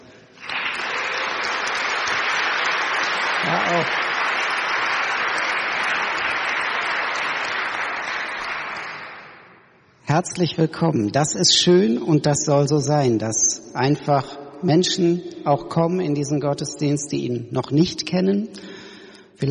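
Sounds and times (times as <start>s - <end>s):
audience applause: 0.4s - 9.5s
speech: 10.1s - 18.7s.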